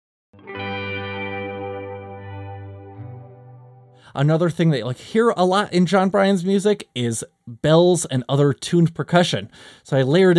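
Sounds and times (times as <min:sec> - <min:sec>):
lush delayed guitar tones: 0:00.4 - 0:04.1
speech: 0:04.1 - 0:10.3.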